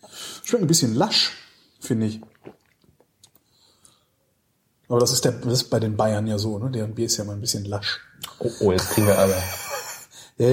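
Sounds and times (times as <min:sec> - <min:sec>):
speech: 0:00.5 - 0:02.4, 0:04.9 - 0:09.6
chewing a banana-flavoured snack: 0:02.2 - 0:03.5
laughter: 0:08.8 - 0:10.1.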